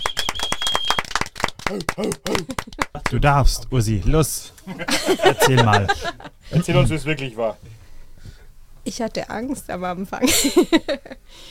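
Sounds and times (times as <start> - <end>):
audience clapping to celebrate a one-year anniversary: 0.0 - 3.5
laughter: 1.6 - 3.3, 4.6 - 6.9, 10.2 - 11.2
speech: 1.7 - 11.4.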